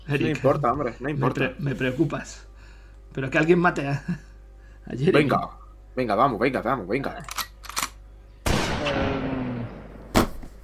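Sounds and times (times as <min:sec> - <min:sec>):
speech: 0:00.1 - 0:02.5, 0:03.1 - 0:07.4
gunshot fired by a sergeant: 0:08.4 - 0:10.6.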